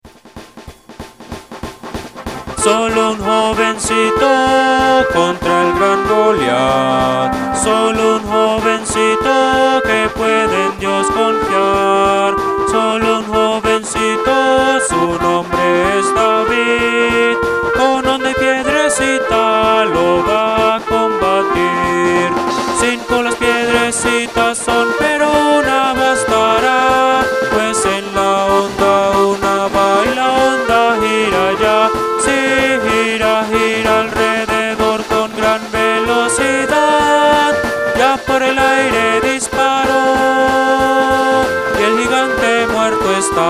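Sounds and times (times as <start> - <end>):
Christian hymn music: 2.1 - 43.4.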